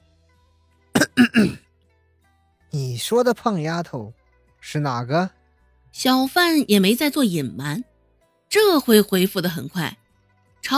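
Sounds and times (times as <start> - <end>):
person clearing throat: 1.0 - 1.6
speech: 1.2 - 1.6, 2.7 - 5.4, 6.0 - 7.9, 8.5 - 10.0.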